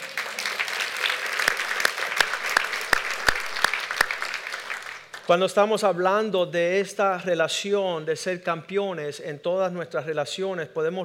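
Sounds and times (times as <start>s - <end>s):
audience applauding: 0.0s - 5.5s
speech: 5.3s - 11.0s.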